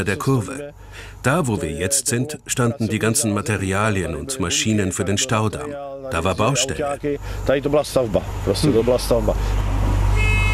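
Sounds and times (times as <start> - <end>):
speech: 0.0 - 9.7
low engine rumble: 0.0 - 10.5
steamboat horn departure signal: 10.1 - 10.5.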